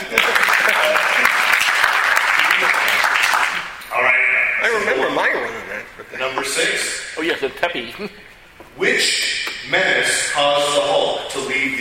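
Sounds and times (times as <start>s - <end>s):
laughter: 0.0s - 1.6s, 4.9s - 6.9s
applause: 0.0s - 3.8s
speech: 7.4s - 11.7s.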